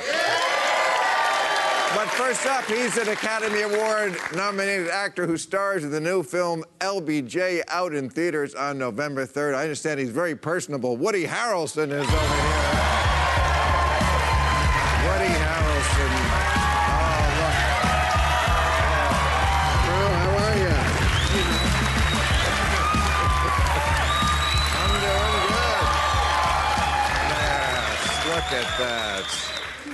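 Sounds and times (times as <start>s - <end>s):
studio audience cheering and applauding: 0.0s - 4.9s, 12.0s - 29.9s
speech: 1.9s - 12.6s, 28.5s - 29.5s.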